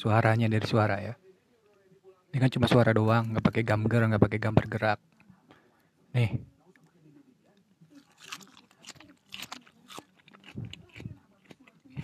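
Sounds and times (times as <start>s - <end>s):
speech: 0.0s - 1.2s, 2.3s - 5.1s, 6.1s - 6.5s
crunchy food being chewed ASMR-style: 7.5s - 12.0s.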